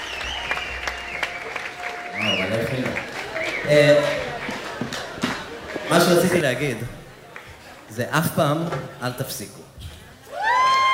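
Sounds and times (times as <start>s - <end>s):
audience applause: 0.0s - 7.9s, 10.3s - 10.9s
speech: 3.7s - 4.2s, 5.9s - 7.0s, 8.0s - 9.8s.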